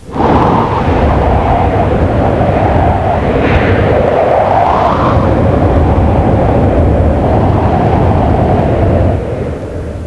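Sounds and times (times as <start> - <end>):
wind: 0.0 - 10.0.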